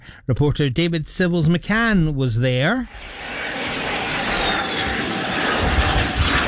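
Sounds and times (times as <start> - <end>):
speech: 0.3 - 3.3
Alpha Jet military jets landing: 2.8 - 6.4.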